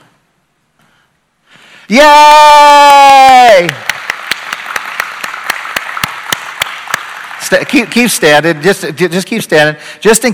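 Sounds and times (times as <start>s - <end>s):
speech: 1.9s - 3.9s, 7.5s - 10.3s
audience applause for mothers: 3.4s - 8.8s.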